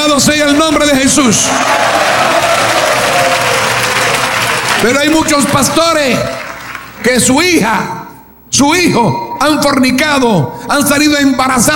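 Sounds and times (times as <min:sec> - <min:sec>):
crowd noise: 0:00.0 - 0:07.0
church congregation clapping in praise at a Spanish-language worship service: 0:00.0 - 0:07.2
speech: 0:00.3 - 0:02.4, 0:04.8 - 0:11.7.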